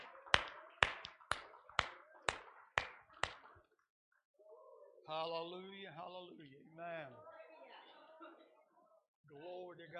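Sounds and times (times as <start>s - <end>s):
audience clapping in unison: 0.0s - 3.8s
speech: 5.1s - 7.3s, 9.3s - 9.9s.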